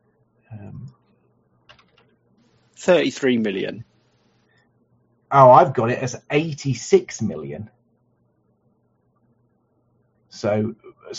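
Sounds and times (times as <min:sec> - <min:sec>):
low hum: 0:00.0 - 0:11.1
clicking at a computer: 0:01.6 - 0:02.2
speech: 0:02.8 - 0:03.9, 0:05.3 - 0:07.8, 0:10.4 - 0:11.1.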